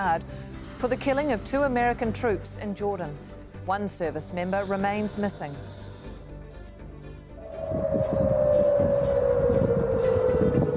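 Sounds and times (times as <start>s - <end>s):
speech: 0.0s - 5.8s
air raid sirens wailing: 7.4s - 10.7s.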